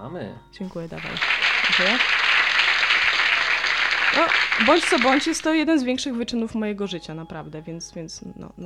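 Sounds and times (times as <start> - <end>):
speech: 0.1 - 2.3, 4.1 - 8.6
applause sound effect: 0.8 - 5.6.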